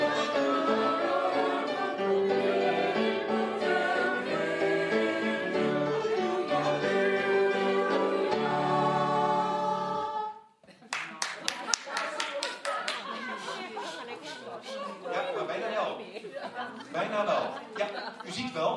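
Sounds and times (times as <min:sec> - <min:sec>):
SATB choir singing: 0:00.0 - 0:10.6
laughter: 0:10.6 - 0:18.6.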